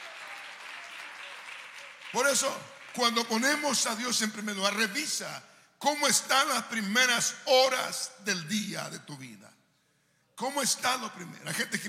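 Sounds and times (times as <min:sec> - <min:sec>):
audience applause: 0:00.0 - 0:03.4
speech: 0:02.1 - 0:09.5, 0:10.4 - 0:11.8.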